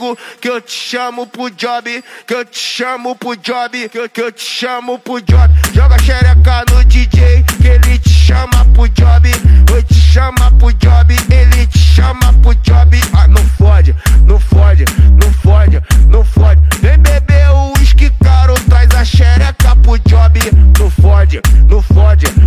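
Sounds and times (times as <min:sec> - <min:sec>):
funk automotivo beat: 0:05.2 - 0:22.4.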